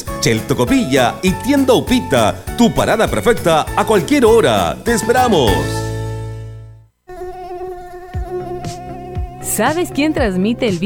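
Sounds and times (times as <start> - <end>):
speech: 0.2 - 5.8, 9.6 - 10.8
Aedes aegypti mosquito buzzing: 7.0 - 10.5.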